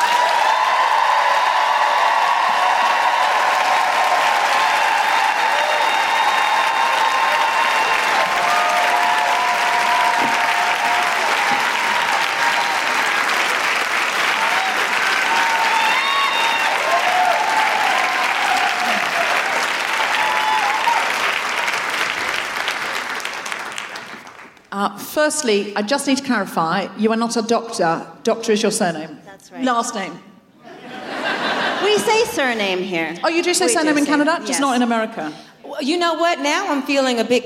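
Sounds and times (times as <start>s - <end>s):
audience applause welcoming a speaker: 0.0s - 24.7s
speech: 25.3s - 30.3s, 31.8s - 37.4s
laughter: 30.6s - 34.8s.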